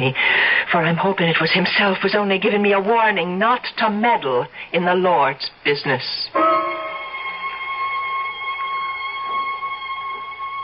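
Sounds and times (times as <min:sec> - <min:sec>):
speech: 0:00.0 - 0:06.7
distant bell tinkling: 0:06.4 - 0:09.2.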